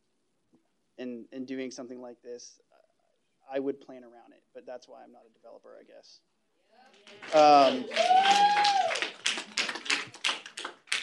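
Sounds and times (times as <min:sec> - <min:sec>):
speech: 0:01.0 - 0:02.7, 0:03.5 - 0:09.0
audience clapping: 0:06.9 - 0:11.0.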